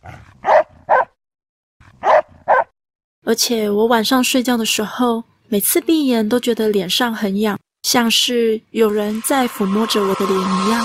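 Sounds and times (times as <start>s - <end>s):
dog growling: 0.0s - 1.0s
dog barking fiercely: 0.0s - 1.2s, 1.8s - 2.7s
speech: 3.3s - 10.8s.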